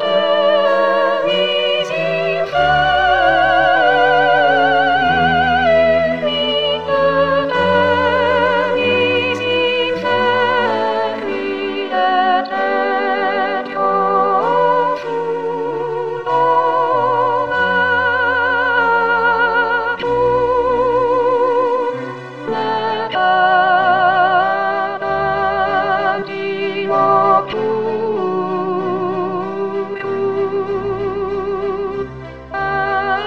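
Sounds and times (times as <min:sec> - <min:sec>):
soprano singing a requiem offertory: 0:00.0 - 0:33.2.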